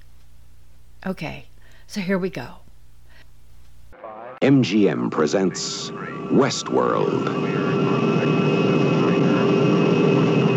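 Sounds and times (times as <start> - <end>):
speech: 1.0 - 2.6, 4.4 - 7.8
aircraft jet roar coming in to land: 5.0 - 10.5
thin whining aircraft engine tones: 5.6 - 10.5.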